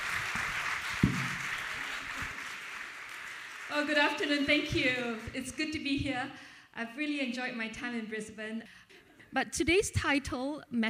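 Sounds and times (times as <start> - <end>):
church audience applauding to welcome a speaker: 0.0 - 4.4
speech: 3.7 - 10.8.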